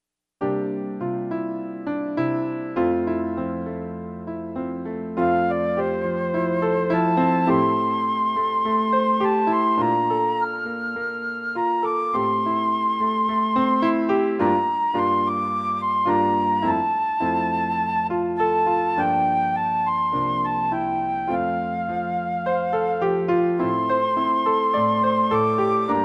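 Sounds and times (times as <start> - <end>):
piano accompaniment in F: 0.4 - 26.0.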